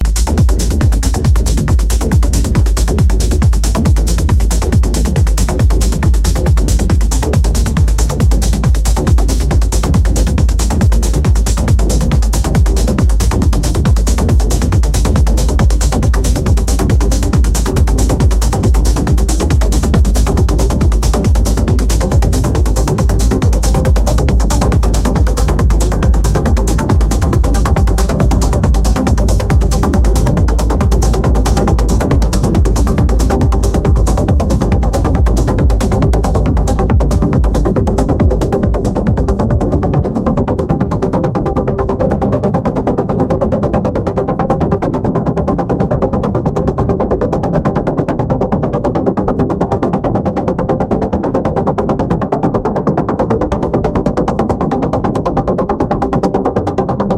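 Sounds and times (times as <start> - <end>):
electric heartbeat: 0.0 - 57.1.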